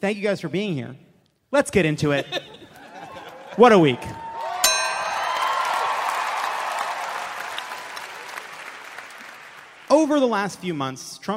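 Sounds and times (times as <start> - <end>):
speech: 0.0 - 2.6, 3.6 - 4.2, 10.0 - 11.3
laughter: 2.2 - 4.3
audience applause: 3.1 - 10.4
brief ringing chime: 4.6 - 6.4.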